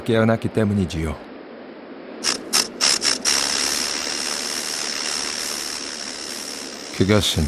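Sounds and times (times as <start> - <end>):
speech: 0.0 - 1.3, 7.0 - 7.4
snake scales scraping along the ground: 2.2 - 7.1.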